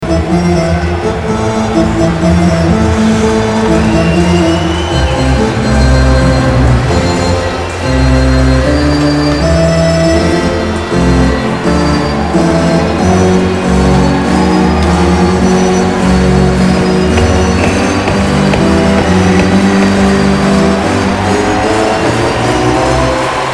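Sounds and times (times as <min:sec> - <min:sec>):
organ: 0:00.0 - 0:23.4.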